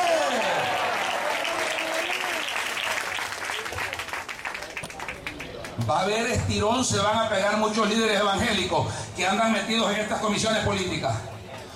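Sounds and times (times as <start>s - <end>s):
audience applauding: 0.0s - 5.9s
speech: 5.8s - 11.3s.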